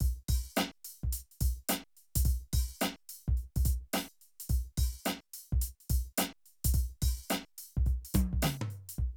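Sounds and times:
streetsoul drum loops: 0.0 - 9.1.

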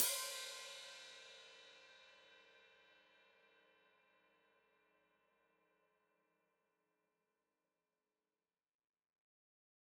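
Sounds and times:
open hi-hat played with foot: 0.0 - 1.5.

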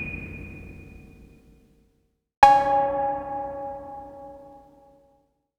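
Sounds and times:
808 drum machine beat: 2.5 - 4.6.

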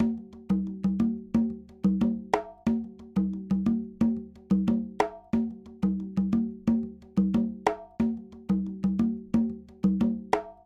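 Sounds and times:
conga Latin percussion: 0.0 - 10.6.

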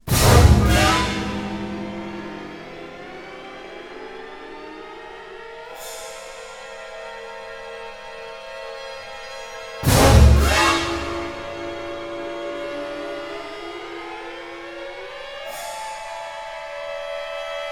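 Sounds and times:
orchestral string accent loop: 0.1 - 5.5, 9.8 - 15.1.

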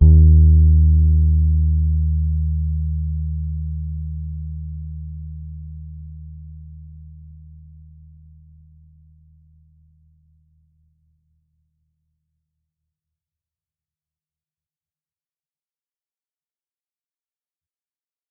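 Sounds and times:
soft D sharp three Pedulla Thunderbass bass guitar note: 0.0 - 8.5.

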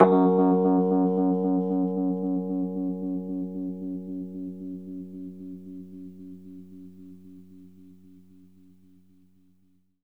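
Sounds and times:
Rhodes electric piano F sharp note: 0.0 - 5.8.

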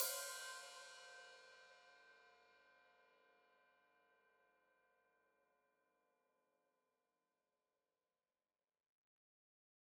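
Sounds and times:
open hi-hat: 0.0 - 1.2.

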